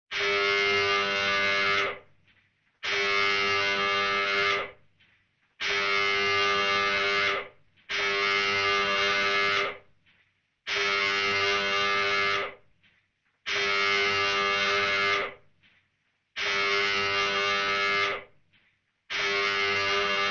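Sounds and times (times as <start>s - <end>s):
submarine alarm signal: 0.1s - 2.1s, 2.8s - 4.8s, 5.6s - 9.8s, 10.7s - 12.6s, 13.5s - 15.4s, 16.4s - 18.3s, 19.1s - 20.2s.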